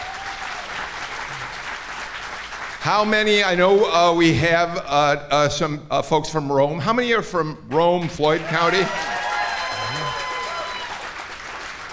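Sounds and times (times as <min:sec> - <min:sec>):
crowd clapping: 0:00.0 - 0:04.0, 0:08.3 - 0:11.9
speech: 0:02.8 - 0:09.1.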